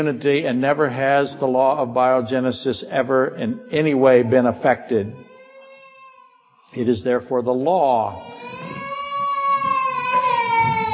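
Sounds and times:
speech: 0.0 - 5.3, 6.7 - 8.5
small child crying: 3.4 - 6.6, 8.2 - 10.9.

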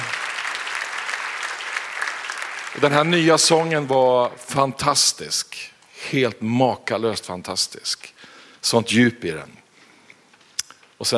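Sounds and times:
warm applause for the worship singers: 0.0 - 3.9
speech: 2.8 - 9.6, 11.0 - 11.1.

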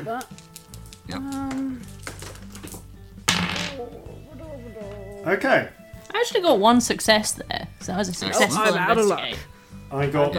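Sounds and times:
speech: 0.0 - 0.5, 1.1 - 2.0, 3.8 - 10.3
ten dice rolled for a tabletop game: 0.2 - 4.0.

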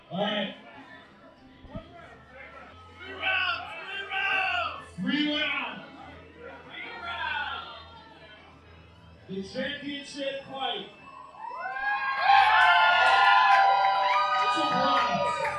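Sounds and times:
drunk crowd yelling and shouting: 1.8 - 8.2, 10.3 - 15.5
speech: 9.4 - 10.9.

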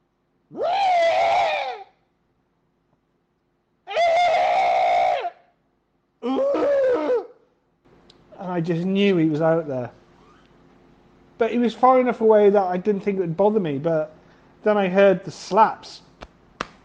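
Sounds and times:
voice imitating an animal's mating cry: 0.5 - 2.0, 3.9 - 5.5, 6.2 - 7.4
speech: 8.6 - 10.0, 11.4 - 16.0.

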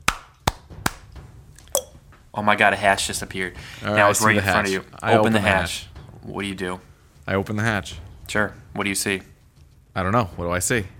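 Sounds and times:
hand claps: 0.0 - 1.1
speech: 2.4 - 9.3, 10.0 - 10.9.

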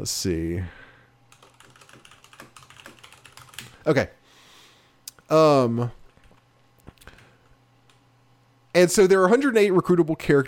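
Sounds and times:
speech: 0.0 - 0.8, 3.8 - 4.2, 5.3 - 6.0, 8.8 - 10.4
faint steady hum: 0.0 - 10.4
typing a short note on a computer keyboard: 1.3 - 3.8, 6.1 - 6.4.

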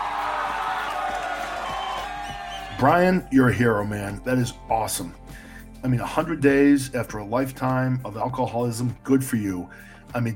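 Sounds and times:
crowd cheering sound effect: 0.0 - 3.0
speech: 2.8 - 5.2, 5.8 - 10.3.

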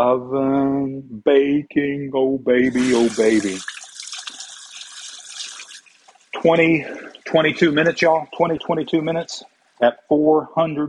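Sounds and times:
speech: 0.0 - 3.8, 6.3 - 10.8
running tap water as a cook rinses hands at a kitchen sink: 2.7 - 9.8.

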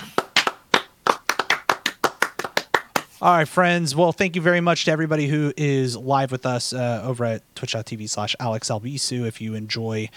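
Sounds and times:
hand clapping: 0.0 - 3.2
speech: 3.2 - 10.1.

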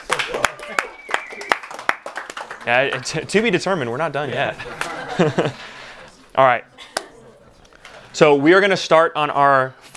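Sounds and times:
audience round of applause: 0.0 - 3.3
speech: 2.6 - 5.7, 6.4 - 6.8, 8.2 - 9.9
laughter: 4.3 - 6.1.

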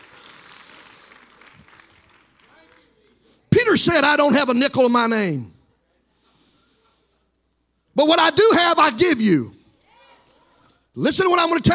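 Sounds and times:
audience clapping hands: 0.0 - 3.3
speech: 3.7 - 5.5, 8.0 - 9.6, 11.0 - 11.7.

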